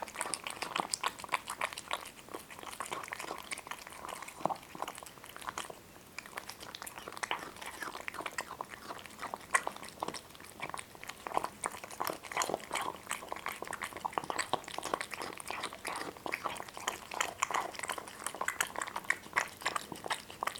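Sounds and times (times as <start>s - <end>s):
two cats chewing crunchy food: 0.0s - 20.5s.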